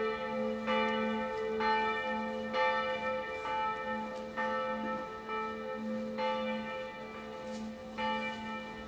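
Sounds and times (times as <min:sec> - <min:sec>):
church bell: 0:00.0 - 0:08.8.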